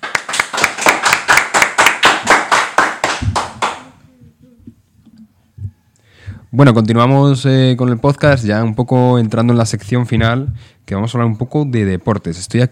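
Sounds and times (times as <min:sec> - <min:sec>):
applause, hands clapping: 0:00.0 - 0:04.0
speech: 0:06.6 - 0:12.7.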